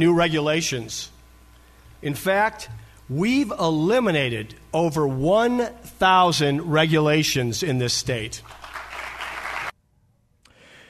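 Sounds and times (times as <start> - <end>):
speech: 0.0 - 1.1, 2.0 - 8.6
audience applause after a speech: 8.4 - 9.7.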